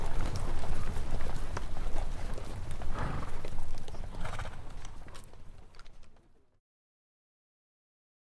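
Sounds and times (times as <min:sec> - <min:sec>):
horses walking by: 0:00.0 - 0:06.6.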